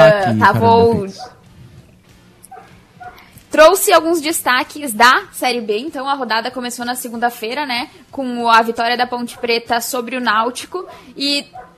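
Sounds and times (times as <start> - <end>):
speech: 0.0 - 1.4, 3.5 - 11.7
neighbourhood dogs barking at night: 1.1 - 1.5, 2.5 - 3.3, 9.3 - 9.6, 10.8 - 11.7.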